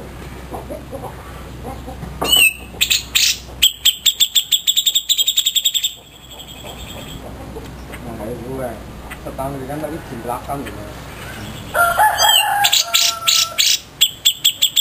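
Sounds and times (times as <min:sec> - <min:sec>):
grey-cheeked bulbul singing tutor song: 0:02.2 - 0:08.1, 0:10.6 - 0:14.7.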